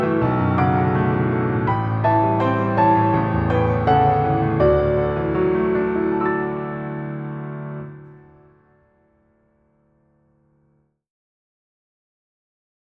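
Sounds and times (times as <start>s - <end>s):
solo piano: 0.0s - 9.6s.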